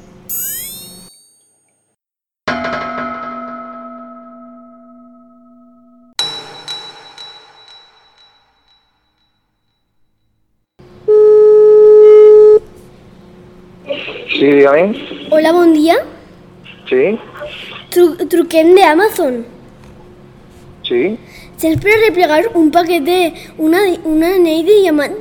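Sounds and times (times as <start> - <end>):
electronic chirp: 0.0 - 1.8
phone dial beeps: 0.3 - 1.3, 11.1 - 12.6
phone ringing tone: 11.1 - 12.6
speech: 14.4 - 16.1, 16.9 - 19.6, 20.9 - 25.1.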